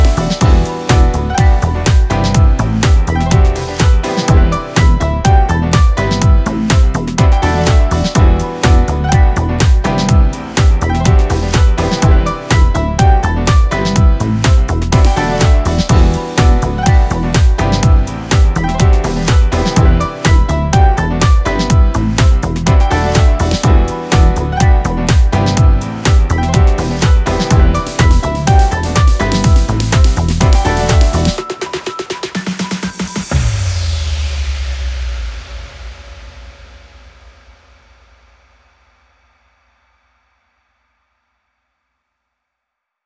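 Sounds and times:
electronic house techno music: 0:00.0 - 0:34.0.

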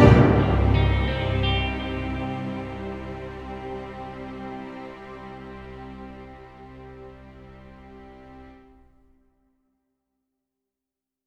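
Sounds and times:
dramatic guitar: 0:00.0 - 0:07.0.

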